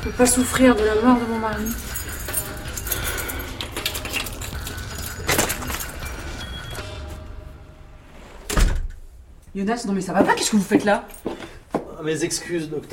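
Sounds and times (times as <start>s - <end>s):
speech: 0.0s - 2.0s, 9.5s - 11.3s, 12.0s - 12.9s
door being handled and opened with rattling: 3.0s - 6.4s.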